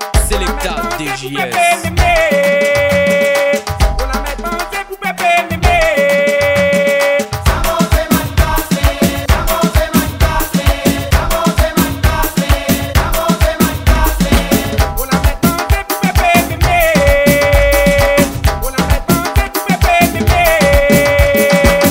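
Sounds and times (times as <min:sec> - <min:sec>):
maloya remix: 0:00.2 - 0:21.8.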